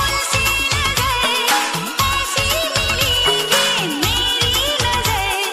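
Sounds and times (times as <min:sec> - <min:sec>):
romantic Bollywood music ringtone: 0:00.2 - 0:05.4.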